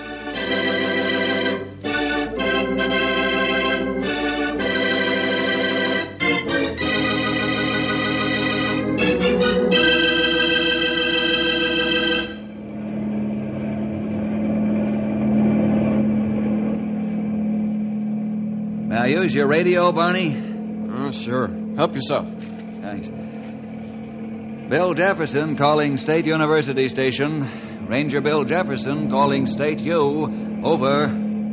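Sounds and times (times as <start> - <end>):
helicopter engine: 0.0 - 31.5
low hum: 0.0 - 31.5
speech: 19.3 - 20.5, 21.1 - 22.4, 24.7 - 31.2.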